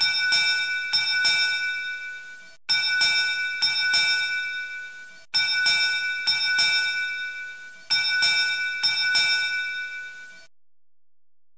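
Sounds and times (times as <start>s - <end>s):
bell: 0.0s - 10.5s.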